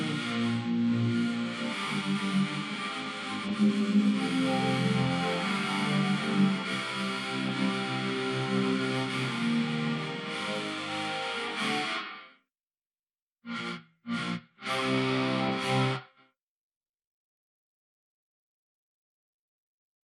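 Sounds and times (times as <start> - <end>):
guitar: 0.0 - 12.4, 13.5 - 16.2.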